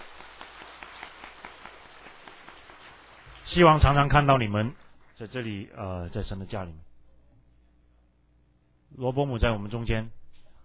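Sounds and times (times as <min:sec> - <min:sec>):
audience applauding to welcome newcomers: 0:00.0 - 0:05.3
speech: 0:03.5 - 0:06.9, 0:08.9 - 0:10.2.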